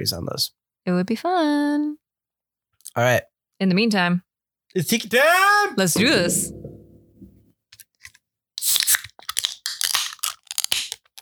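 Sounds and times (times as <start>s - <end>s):
speech: 0.0s - 2.0s, 2.9s - 6.8s
low hum: 6.0s - 7.5s
beer can being cracked open: 8.0s - 11.2s.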